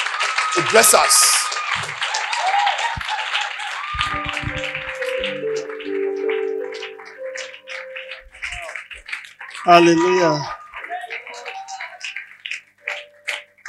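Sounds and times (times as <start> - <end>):
church service audience applause welcoming a pastor: 0.0 - 13.6
speech: 0.6 - 2.2, 9.6 - 10.6
tonal sounds: 4.0 - 8.7.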